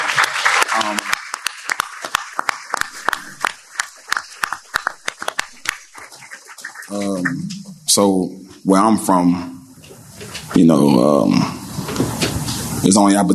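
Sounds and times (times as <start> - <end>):
applause: 0.0 - 7.3
speech: 8.0 - 9.5, 10.6 - 11.6, 12.8 - 13.3.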